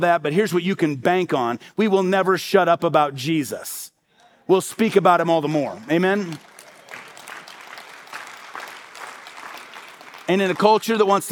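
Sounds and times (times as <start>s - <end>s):
speech: 0.0s - 3.9s, 4.5s - 6.5s, 10.3s - 11.2s
light audience applause: 5.8s - 11.2s.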